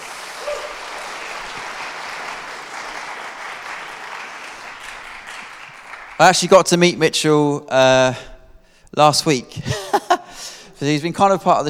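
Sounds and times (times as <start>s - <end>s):
audience applause: 0.0s - 6.5s
speech: 6.2s - 8.3s, 8.9s - 9.8s, 10.8s - 11.6s.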